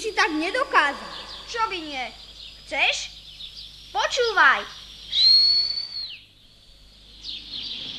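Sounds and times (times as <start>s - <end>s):
speech: 0.0s - 3.2s, 3.9s - 4.8s
person whistling: 5.2s - 6.1s.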